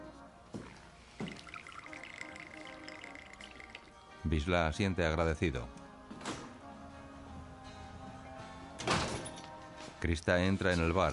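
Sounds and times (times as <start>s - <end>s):
bartender pouring a drink into a glass at a bar: 0.7s - 4.1s
glass clinks at a bar: 1.3s - 3.9s
speech: 4.3s - 5.8s, 10.1s - 11.1s.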